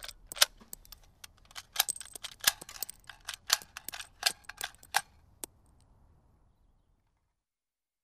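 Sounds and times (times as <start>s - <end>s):
loading and unloading a rifle magazine: 0.0s - 5.2s.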